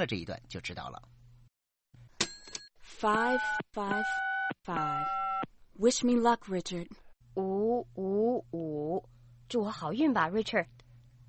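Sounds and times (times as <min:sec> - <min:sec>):
speech: 0:00.0 - 0:01.2, 0:03.0 - 0:05.2, 0:05.8 - 0:10.8
telephone connecting tones: 0:03.1 - 0:05.4.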